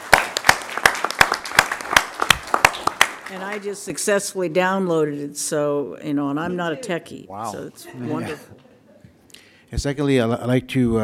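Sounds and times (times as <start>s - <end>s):
audience hand clapping: 0.0s - 3.6s
speech: 3.3s - 8.7s, 9.7s - 11.0s.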